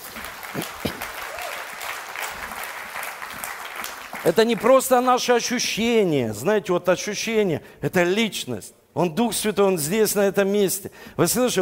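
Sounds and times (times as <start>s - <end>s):
audience applause: 0.0s - 4.9s
speech: 0.6s - 0.8s, 4.2s - 11.5s.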